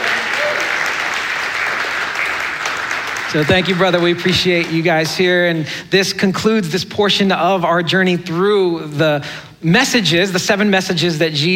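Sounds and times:
crowd applauding: 0.0 - 5.3
speech: 3.3 - 11.5.

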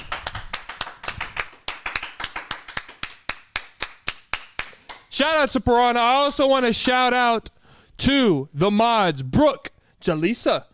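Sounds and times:
crowd hands clapping in applause: 0.0 - 5.1
speech: 5.2 - 10.7.

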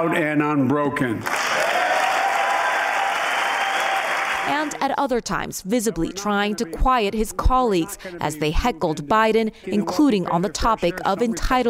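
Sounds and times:
speech: 0.0 - 1.4, 4.5 - 11.6
large crowd applause: 1.2 - 4.8.

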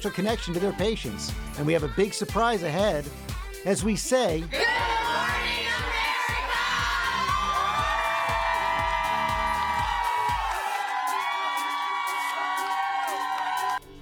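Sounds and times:
speech: 0.0 - 4.9
rhythmic low thumps: 0.0 - 10.6
large crowd cheering: 4.5 - 13.9.

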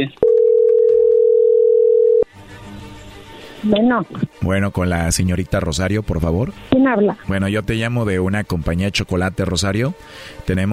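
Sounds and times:
speech: 0.0 - 0.2, 3.6 - 10.7
telephone call being dialed: 0.2 - 2.2.

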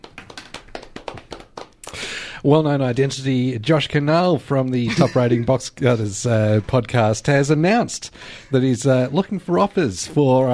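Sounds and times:
round of applause: 0.0 - 1.9
speech: 2.4 - 10.5.

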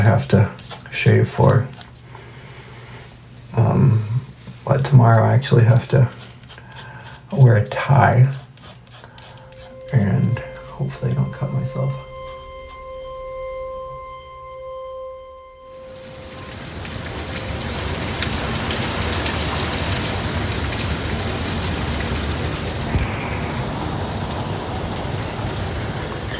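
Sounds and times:
speech: 0.2 - 1.7, 4.7 - 6.2, 7.3 - 8.4, 9.9 - 12.1
low steady humming tones: 9.1 - 26.3
heavy rain pouring: 15.6 - 26.3.

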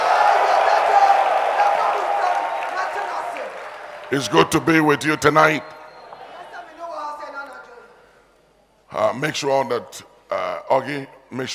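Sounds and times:
audience shouting: 0.0 - 6.6
speech: 4.1 - 5.8, 9.2 - 11.5.

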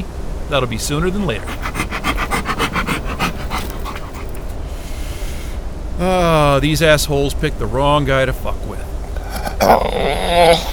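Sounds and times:
speech: 0.5 - 1.9, 6.0 - 8.9, 9.6 - 10.7
dog panting after playing fetch: 0.8 - 5.4.

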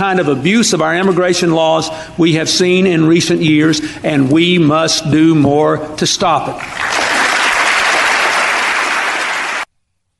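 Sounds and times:
speech: 0.0 - 6.9
audience applauding a speech: 6.6 - 9.7.

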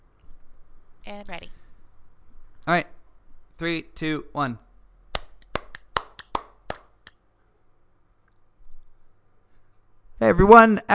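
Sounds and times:
quiet room hum: 0.0 - 10.9
speech: 1.1 - 1.6, 2.6 - 2.9, 3.6 - 4.6, 10.2 - 10.9
sharp hand claps to sync recording: 5.1 - 7.2.

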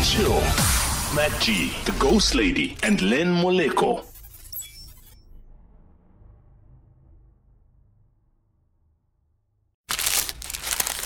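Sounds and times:
speech: 0.2 - 4.1
McDonald's steak, egg and cheese bagel wrapper being unwrapped: 9.9 - 11.0.

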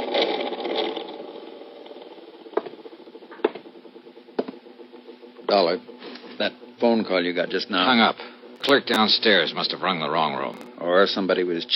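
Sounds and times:
overhead ceiling fan running: 0.0 - 11.7
speech: 5.5 - 11.7.

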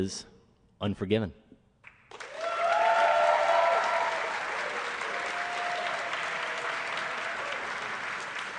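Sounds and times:
speech: 0.0 - 1.4
live audience applause: 2.1 - 8.5.

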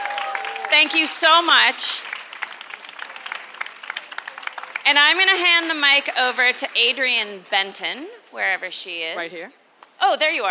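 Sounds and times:
audience applause for women being honoured at a presentation: 0.0 - 6.8
speech: 0.7 - 2.1, 4.9 - 10.4.

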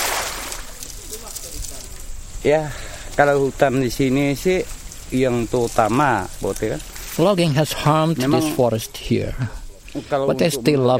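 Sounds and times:
metal fishing net tossed into river: 0.0 - 1.2
water washing: 0.0 - 9.0
speech: 2.4 - 10.9.

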